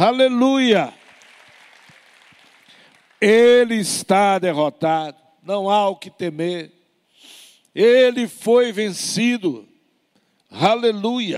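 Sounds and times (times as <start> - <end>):
speech: 0.0 - 1.0, 3.2 - 9.7, 10.5 - 11.3
audience applause: 0.8 - 3.4.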